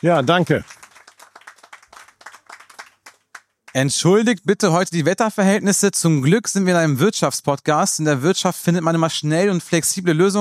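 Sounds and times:
speech: 0:00.0 - 0:00.8, 0:03.7 - 0:10.3
audience clapping welcoming a city mayor to a business and tech event: 0:00.0 - 0:03.9.

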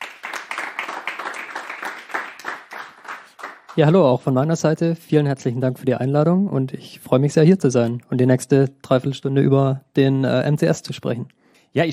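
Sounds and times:
audience applause: 0:00.0 - 0:03.9
speech: 0:03.8 - 0:11.9.

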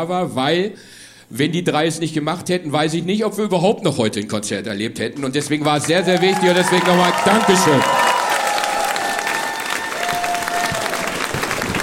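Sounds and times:
speech: 0:00.0 - 0:08.0
concert audience applause: 0:05.4 - 0:11.8.

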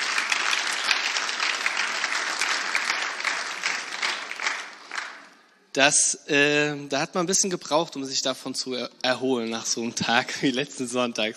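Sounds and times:
audience applauding: 0:00.0 - 0:05.4
speech: 0:05.8 - 0:11.3.

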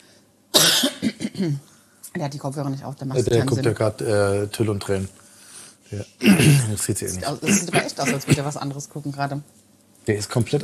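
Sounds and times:
cough into a microphone: 0:00.6 - 0:01.6, 0:06.2 - 0:08.6
speech: 0:01.4 - 0:05.2, 0:05.9 - 0:10.6
laughter: 0:03.2 - 0:05.1, 0:06.0 - 0:08.6.

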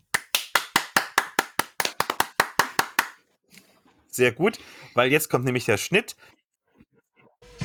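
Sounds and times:
person clapping hands: 0:00.1 - 0:03.2
speech: 0:04.2 - 0:06.4.

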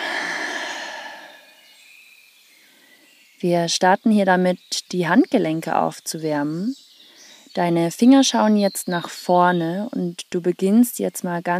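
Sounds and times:
deep breath exhaled through an open mouth during a guided exercise warm-up: 0:00.0 - 0:01.6
speech: 0:03.4 - 0:06.8, 0:07.6 - 0:11.5.

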